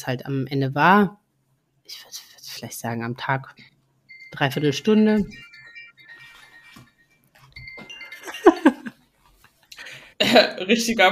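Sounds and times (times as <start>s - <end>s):
speech: 0.0s - 1.2s, 1.9s - 3.7s, 4.3s - 5.5s, 10.3s - 11.1s
Apple Watch notification alert: 4.1s - 8.9s
laughter: 8.2s - 8.9s.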